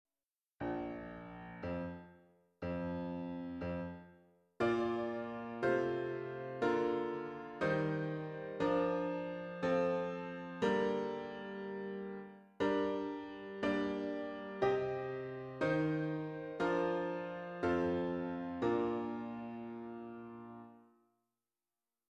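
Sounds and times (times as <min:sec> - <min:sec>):
piano: 0:00.6 - 0:21.0.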